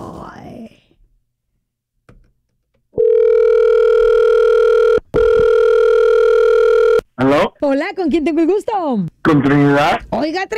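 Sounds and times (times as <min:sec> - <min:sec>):
phone line electronic ringback tone: 0:03.0 - 0:07.0
speech: 0:08.1 - 0:10.5.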